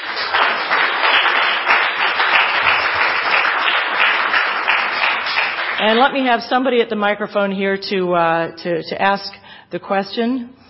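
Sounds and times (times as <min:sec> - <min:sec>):
audience applause for panelists: 0:00.0 - 0:06.0
speech: 0:05.8 - 0:10.6.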